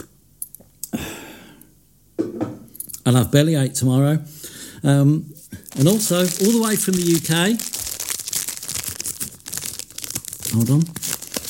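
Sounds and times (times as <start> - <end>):
speech: 3.1 - 7.8, 10.6 - 11.0
Foxy's Crunch Creams biscuit packet crinkling: 5.5 - 11.4.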